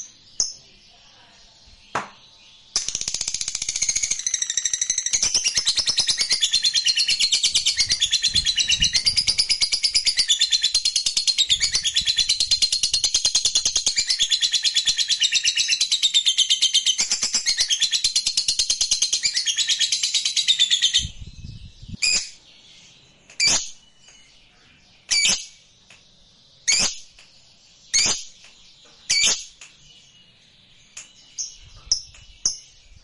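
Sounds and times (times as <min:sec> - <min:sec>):
lovebird twittering: 0:02.7 - 0:22.4, 0:26.6 - 0:27.1, 0:27.9 - 0:28.5, 0:29.1 - 0:29.6.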